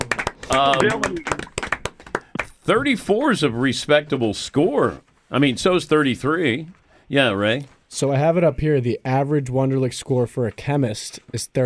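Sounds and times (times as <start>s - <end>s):
round of applause: 0.0s - 2.6s
speech: 0.6s - 1.5s, 2.7s - 11.6s.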